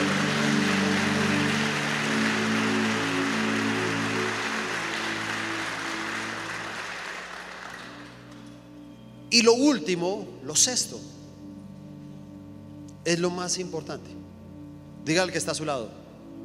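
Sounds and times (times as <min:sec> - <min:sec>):
audience applauding: 0:00.0 - 0:08.5
low keyboard chords: 0:00.0 - 0:16.4
speech: 0:09.3 - 0:11.2, 0:13.0 - 0:14.4, 0:15.0 - 0:16.4.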